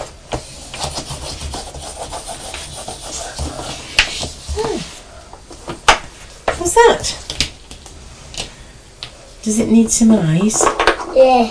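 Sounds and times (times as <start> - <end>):
pencil drawing around a shape on paper: 0.6 - 4.6
speech: 6.8 - 7.2, 9.5 - 11.5.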